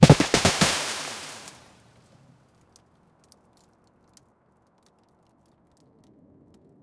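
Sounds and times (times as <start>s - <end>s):
de Havilland Canada DHC-2 crashing: 0.0s - 1.7s.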